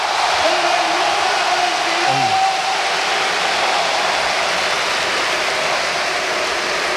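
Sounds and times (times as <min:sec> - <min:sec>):
stadium crowd ovation for Isco at Real Sociedad: 0:00.0 - 0:06.9.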